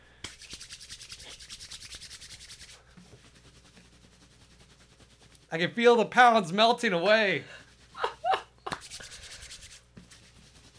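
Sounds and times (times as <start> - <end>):
palms rubbed briskly together: 0.2 - 5.5, 7.6 - 10.7
speech: 5.5 - 7.6.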